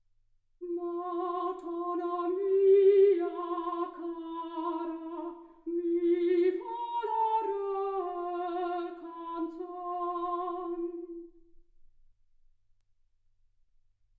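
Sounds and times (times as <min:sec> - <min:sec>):
soprano singing: 0:00.6 - 0:11.4.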